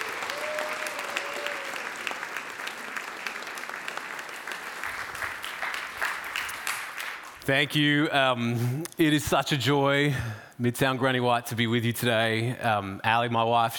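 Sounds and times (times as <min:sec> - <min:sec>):
audience applause welcoming a speaker at a Midtown gathering: 0:00.0 - 0:07.5
speech: 0:07.5 - 0:13.7.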